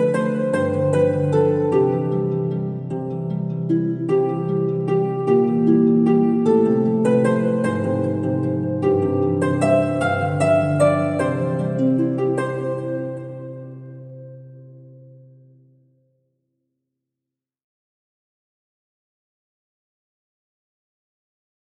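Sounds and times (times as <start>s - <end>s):
harp: 0.0s - 15.9s.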